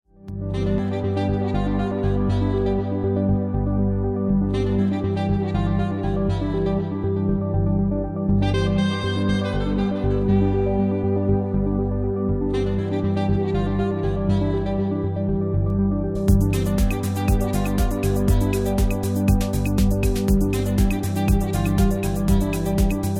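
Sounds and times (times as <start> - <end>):
new jazz music: 0.4 - 23.1.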